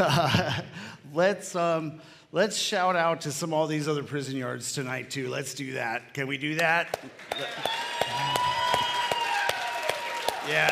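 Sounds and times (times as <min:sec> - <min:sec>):
speech: 0:00.0 - 0:08.5, 0:10.4 - 0:10.7
crowd clapping in unison to a steady beat: 0:06.6 - 0:10.7.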